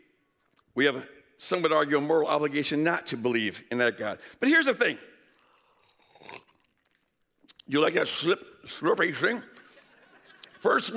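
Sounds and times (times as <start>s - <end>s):
speech: 0.8s - 5.1s, 7.7s - 9.6s, 10.6s - 10.9s
ice crunching in mouth: 5.3s - 7.7s
laughter: 9.7s - 10.9s.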